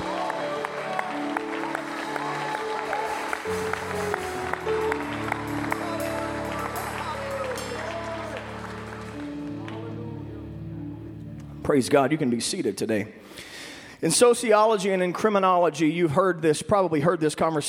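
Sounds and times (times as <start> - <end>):
audience hand clapping: 0.0 - 10.3
speech: 11.7 - 17.6.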